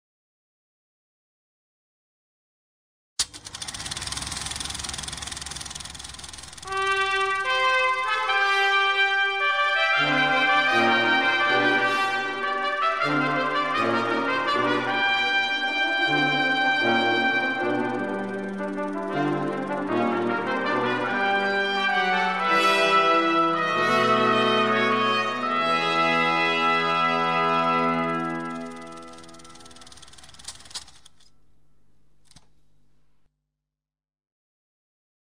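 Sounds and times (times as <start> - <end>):
brass instruments: 6.6 - 30.7.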